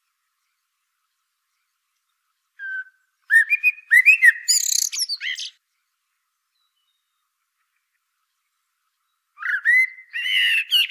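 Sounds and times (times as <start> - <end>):
Common blackbird Turdus merula singing warbled phrases: 2.6 - 5.6, 9.4 - 10.9.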